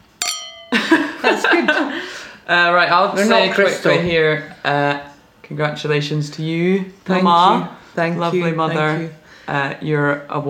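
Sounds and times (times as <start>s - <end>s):
drinking glasses clinking in a toast: 0.0s - 1.4s
laughter: 0.7s - 2.4s
speech: 1.2s - 10.4s.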